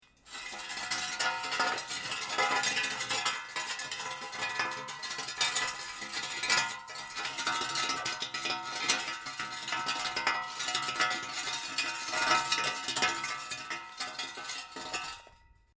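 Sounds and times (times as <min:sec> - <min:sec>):
metal pipe scraping with rattle and grind: 0:00.2 - 0:15.4.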